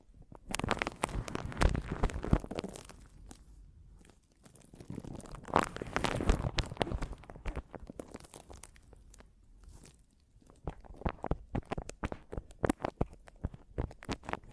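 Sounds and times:
scratching on a microphone: 0:00.0 - 0:03.4, 0:04.8 - 0:08.2, 0:10.5 - 0:14.5.

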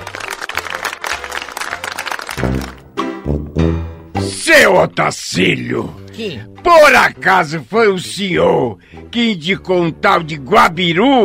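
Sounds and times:
applause: 0:00.0 - 0:02.9
speech: 0:02.4 - 0:11.2.

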